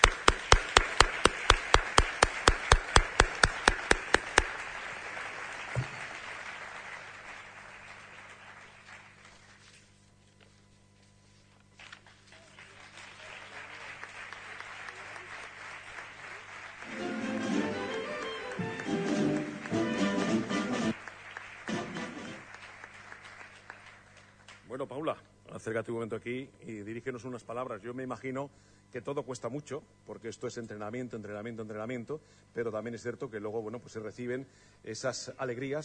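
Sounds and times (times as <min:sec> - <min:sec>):
audience applause: 0:00.0 - 0:09.8, 0:12.0 - 0:24.7
speech: 0:24.8 - 0:35.8.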